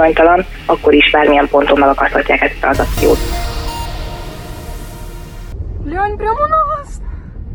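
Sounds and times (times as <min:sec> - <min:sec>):
speech: 0:00.0 - 0:03.5, 0:06.0 - 0:06.8
brief high tone: 0:02.8 - 0:05.6.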